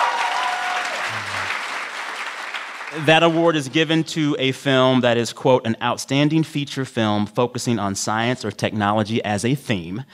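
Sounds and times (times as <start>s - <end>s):
audience applause: 0.0s - 3.5s
speech: 2.9s - 10.1s.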